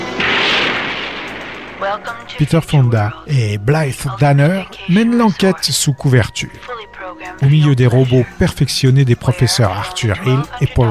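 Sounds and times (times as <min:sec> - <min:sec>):
rocket ignition and blast-off roar: 0:00.0 - 0:02.5
speech: 0:01.9 - 0:10.8.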